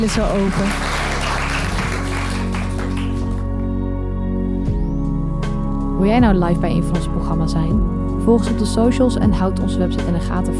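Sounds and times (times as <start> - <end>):
speech: 0.0 - 0.9, 6.0 - 10.5
audience applause: 0.0 - 3.6
sustained music with a deep bass hum: 0.0 - 10.5.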